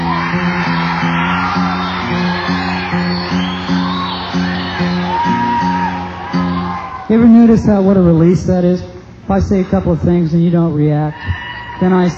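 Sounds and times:
audience whooping and yelling at a live show: 0.0s - 8.2s, 11.0s - 12.1s
speech: 7.1s - 12.1s.

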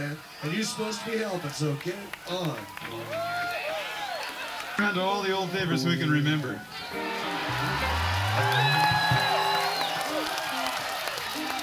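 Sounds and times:
speech: 0.0s - 3.7s, 4.8s - 9.3s
audience clapping: 1.4s - 5.0s, 7.0s - 11.6s.

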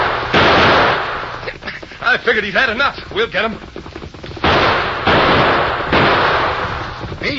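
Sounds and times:
gunshots in radio drama shootout: 0.0s - 1.6s, 3.1s - 7.3s
speech: 2.1s - 3.7s.

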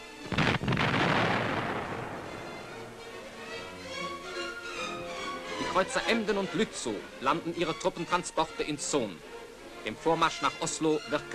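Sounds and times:
heavy coastal artillery guns firing: 0.3s - 2.5s
speech: 5.8s - 11.3s.

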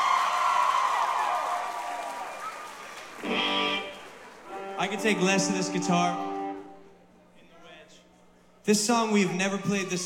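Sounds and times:
audience applause at concert: 0.0s - 5.2s
speech: 4.8s - 6.3s, 8.7s - 10.0s.

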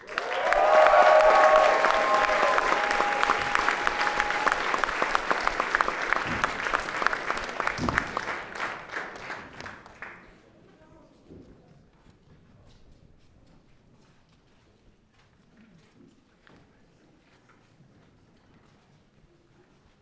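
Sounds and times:
audience clapping and cheering welcoming a band at a music fest: 0.0s - 10.3s
long sustained whistle from the audience: 0.5s - 5.6s.

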